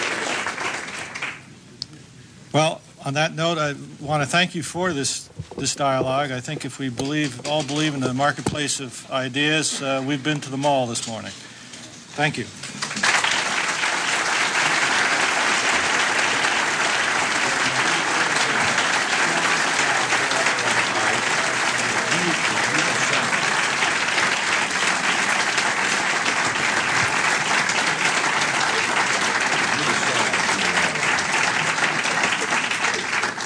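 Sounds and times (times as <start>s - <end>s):
audience applause: 0.0s - 1.5s, 12.8s - 33.4s
speech: 2.5s - 11.5s, 12.2s - 12.7s.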